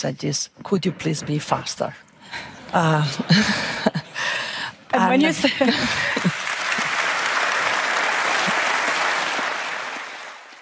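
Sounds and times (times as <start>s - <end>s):
speech: 0.0s - 4.0s, 4.9s - 6.3s
large audience applause at annual meeting: 5.6s - 10.6s.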